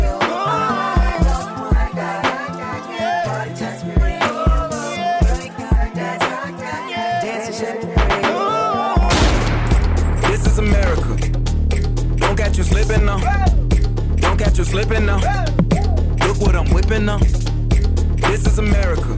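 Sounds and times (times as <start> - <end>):
song: 0.0 - 19.1.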